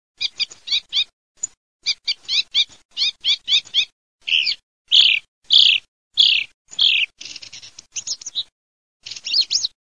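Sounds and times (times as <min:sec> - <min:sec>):
thrush song of bright varied phrases: 0:00.2 - 0:09.8.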